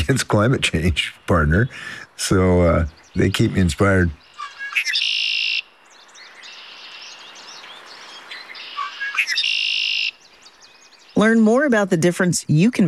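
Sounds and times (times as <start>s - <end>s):
speech: 0.1s - 5.1s, 11.2s - 12.8s
red-winged blackbird whistling: 4.2s - 11.2s.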